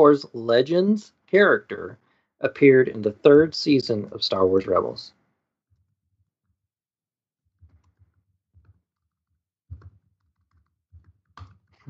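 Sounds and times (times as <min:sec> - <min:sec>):
speech: 0:00.0 - 0:05.2
typing on a computer keyboard: 0:07.6 - 0:11.7.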